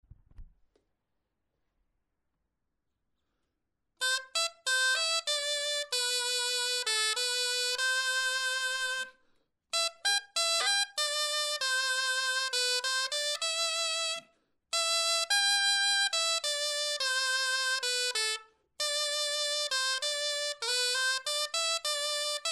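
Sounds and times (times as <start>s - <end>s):
clarinet etude: 4.0s - 22.5s.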